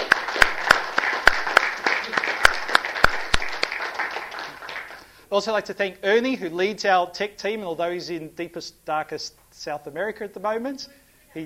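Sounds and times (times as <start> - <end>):
audience applause: 0.0 - 5.1
speech: 5.3 - 11.4.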